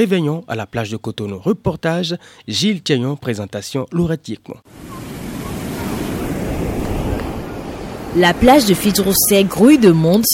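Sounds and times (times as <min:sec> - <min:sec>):
speech: 0:00.0 - 0:05.1, 0:08.1 - 0:10.3
gusting wind buffeting the microphone: 0:04.7 - 0:10.3
surf washing onto a beach: 0:04.7 - 0:10.3.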